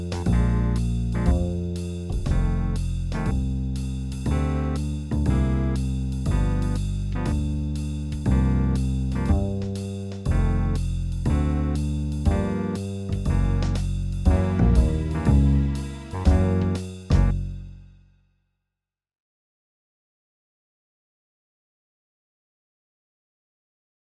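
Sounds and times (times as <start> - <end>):
blues piano: 0.0 - 3.5, 4.2 - 17.4.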